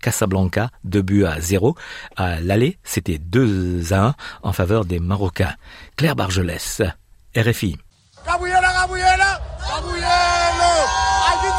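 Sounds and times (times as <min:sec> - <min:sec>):
speech: 0:00.0 - 0:08.5
stadium crowd of football supporters at Loftus stadium in Pretoria: 0:08.2 - 0:11.5.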